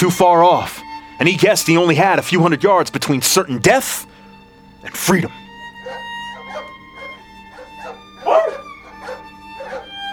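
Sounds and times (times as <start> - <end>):
speech: 0.0 - 4.1, 4.8 - 5.4
dogs barking in the distance: 5.2 - 10.1.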